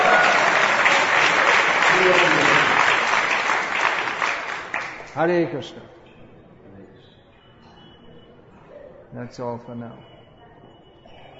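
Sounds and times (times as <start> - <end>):
audience clapping: 0.0 - 5.3
speech: 5.2 - 6.0, 9.2 - 10.1.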